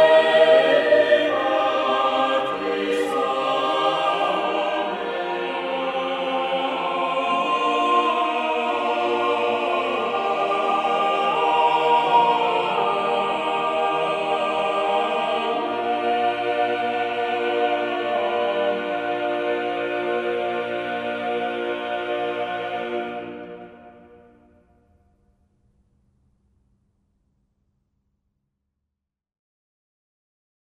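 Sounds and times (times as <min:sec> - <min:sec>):
sacred mass music: 0:00.0 - 0:24.8.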